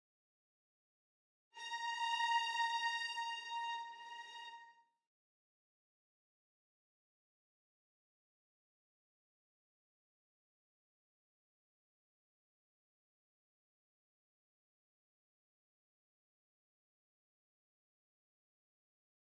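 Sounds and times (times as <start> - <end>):
violins: 1.6 - 4.7.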